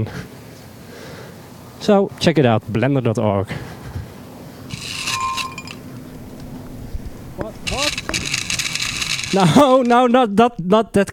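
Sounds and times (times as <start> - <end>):
speech: 0.0 - 0.3, 1.8 - 3.7, 9.3 - 11.1
low steady hum: 0.0 - 11.1
ice clinking in a whiskey glass: 5.0 - 5.8.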